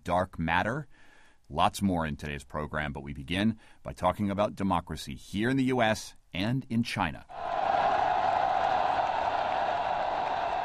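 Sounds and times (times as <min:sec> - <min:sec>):
speech: 0:00.0 - 0:07.6
crowd roar from pro-democracy demonstrators in Hong Kong: 0:07.3 - 0:10.6.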